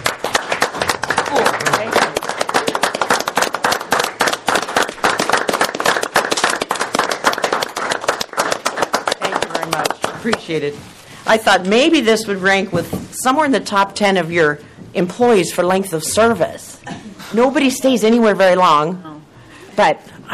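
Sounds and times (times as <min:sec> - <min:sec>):
round of applause: 0:00.0 - 0:10.3
speech: 0:10.2 - 0:19.1, 0:19.8 - 0:20.3.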